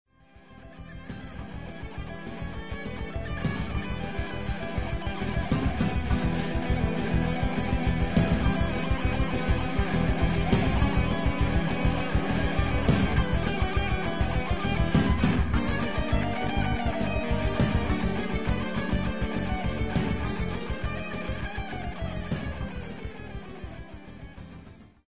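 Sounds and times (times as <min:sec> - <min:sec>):
guitar solo: 0:00.4 - 0:24.8.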